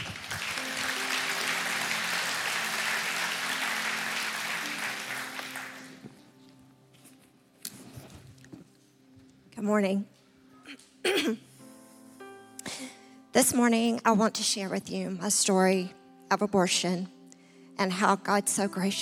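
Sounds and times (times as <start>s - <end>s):
church service audience applauding a couple onto the stage: 0.0s - 6.2s
speech: 9.6s - 10.2s, 11.2s - 11.4s, 13.4s - 17.2s, 17.8s - 19.0s.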